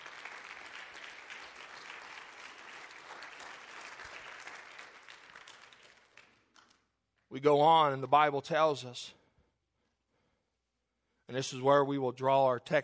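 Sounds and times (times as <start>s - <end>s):
audience applause: 0.0s - 6.7s
speech: 7.3s - 9.2s, 11.3s - 12.8s.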